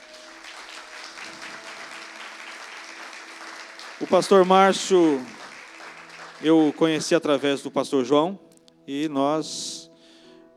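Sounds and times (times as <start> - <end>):
audience applause: 0.0 - 7.4
speech: 4.0 - 5.4, 6.4 - 9.8.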